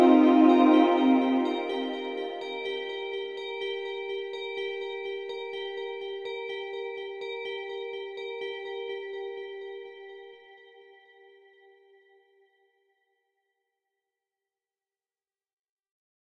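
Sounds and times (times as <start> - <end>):
music from noise: 0.0 - 3.2.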